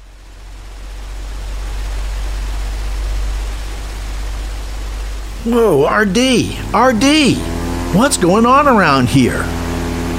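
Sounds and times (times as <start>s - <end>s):
deep low rumble: 0.0s - 6.8s
large fans blowing with a storm-like roar: 0.0s - 10.1s
speech: 5.4s - 9.6s.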